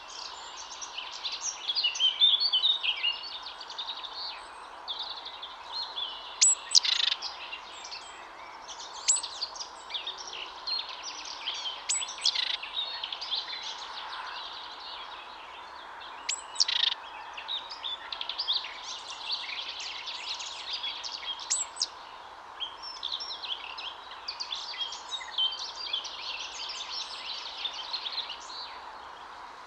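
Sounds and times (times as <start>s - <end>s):
background chorus of other chirping birds: 0.0s - 29.6s
Great tit buzzy calls: 6.4s - 7.2s, 16.3s - 17.0s, 21.5s - 21.8s.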